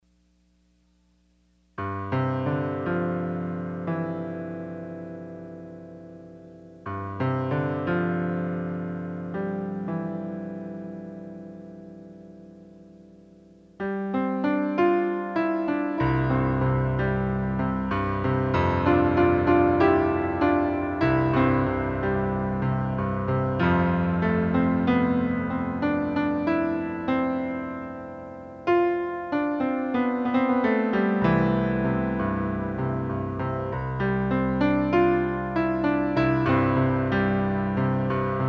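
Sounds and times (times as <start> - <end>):
autumn-themed piano piece: 1.8 - 38.4.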